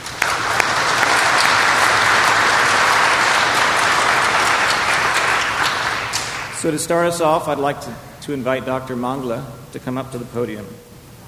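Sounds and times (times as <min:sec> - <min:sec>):
audience applause: 0:00.0 - 0:06.8
speech: 0:06.6 - 0:10.9.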